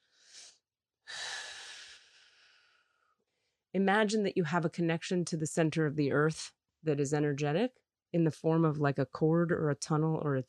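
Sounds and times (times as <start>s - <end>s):
deep breaths into the low belly: 1.1s - 3.5s
speech: 3.8s - 10.4s.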